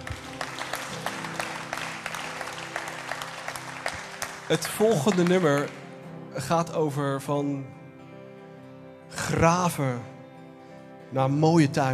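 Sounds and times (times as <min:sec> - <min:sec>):
audience applause: 0:00.0 - 0:06.0
speech: 0:04.5 - 0:05.8, 0:06.4 - 0:07.8, 0:09.3 - 0:10.1, 0:11.1 - 0:11.9.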